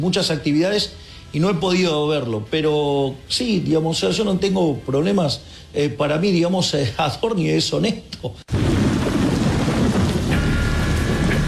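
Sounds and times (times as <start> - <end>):
speech: 0.0 - 8.8
heavy rain downpour in Buenos Aires: 8.4 - 11.4.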